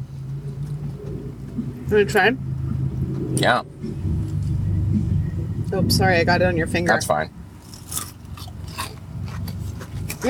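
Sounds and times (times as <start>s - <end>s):
low steady rumble: 0.0s - 10.2s
speech: 1.9s - 2.5s, 3.4s - 3.7s, 5.7s - 8.0s
chewing crunchy onion rings with barbecue sauce: 7.6s - 10.2s.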